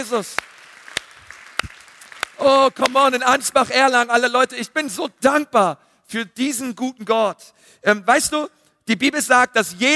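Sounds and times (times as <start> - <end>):
speech: 0.0 - 0.6, 2.4 - 9.9
audience applauding: 0.0 - 3.0.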